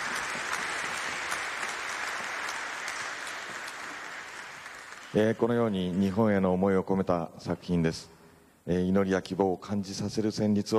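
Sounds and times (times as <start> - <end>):
audience applause: 0.0 - 6.2
speech: 5.1 - 10.7.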